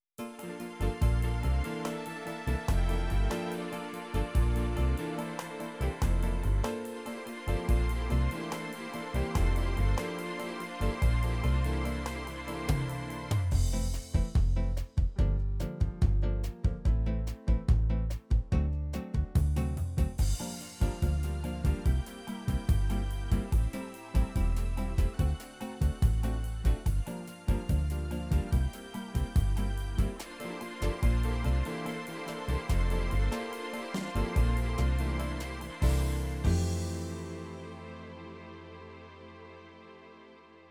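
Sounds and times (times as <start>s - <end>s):
Brazilian bossa nova music: 0.0s - 39.6s.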